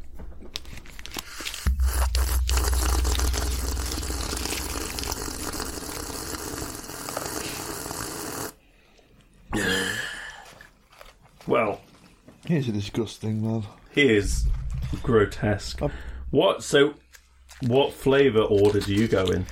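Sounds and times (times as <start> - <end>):
sipping water noisily: 1.6 - 8.6
speech: 12.5 - 17.0, 17.6 - 19.5.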